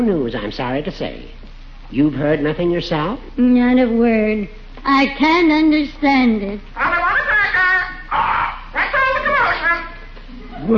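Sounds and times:
speech: 0.0s - 7.0s
parrot squawking and chattering: 6.8s - 10.0s.

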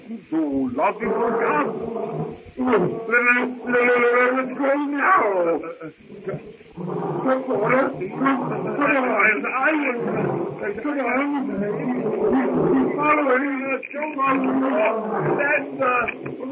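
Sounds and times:
lion roaring: 0.0s - 16.5s
speech: 0.1s - 16.5s.

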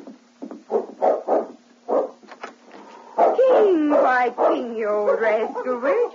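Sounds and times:
faint steady hum: 0.0s - 6.1s
dog barking at door: 0.7s - 2.2s, 3.2s - 6.1s
speech: 3.6s - 6.1s.

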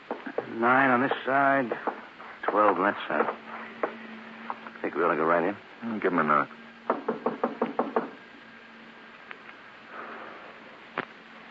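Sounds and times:
faint hum: 0.0s - 11.4s
speech: 0.6s - 3.5s, 4.8s - 6.6s
knocking on a door: 1.7s - 4.0s, 6.9s - 8.2s.

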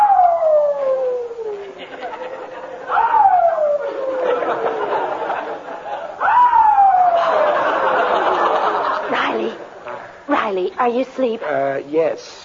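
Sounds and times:
puppy howling at night: 0.0s - 1.7s, 2.9s - 4.8s
laughter: 1.6s - 6.3s, 7.0s - 10.0s
speech: 10.8s - 12.4s.

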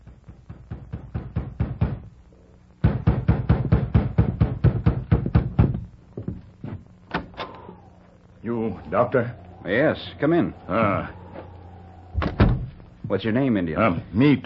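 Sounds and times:
firm rapid knocking on a wooden door: 0.0s - 2.1s, 2.8s - 5.9s
speech: 8.9s - 11.2s, 13.1s - 14.4s.

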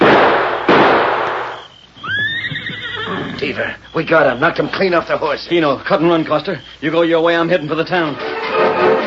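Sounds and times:
rifle gunshot: 0.0s - 1.7s
speech: 3.4s - 8.9s.

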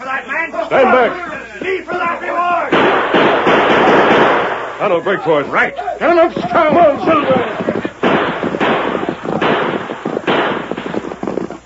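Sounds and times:
speech: 0.2s - 2.8s, 4.8s - 7.5s
gunshots in a western radio drama: 2.0s - 5.0s, 6.1s - 11.6s.

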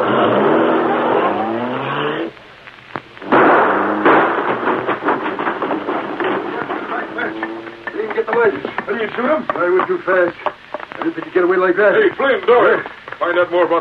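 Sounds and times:
car engine revving: 0.0s - 2.4s, 3.2s - 8.4s
rattling clatter: 3.4s - 11.3s
speech: 9.6s - 13.7s.

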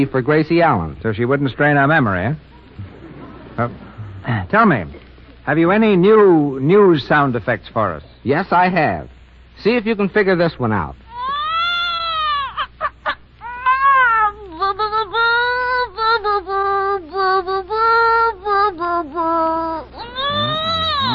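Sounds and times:
speech: 0.0s - 2.5s, 3.6s - 11.0s
voice imitating a baby crooning as a radio sound effect: 11.1s - 12.7s, 13.4s - 21.1s.

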